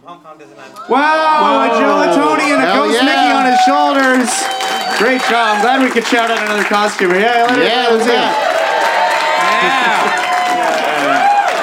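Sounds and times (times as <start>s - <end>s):
speech: 0.0s - 8.5s, 9.5s - 10.3s
big round of applause: 3.0s - 11.6s.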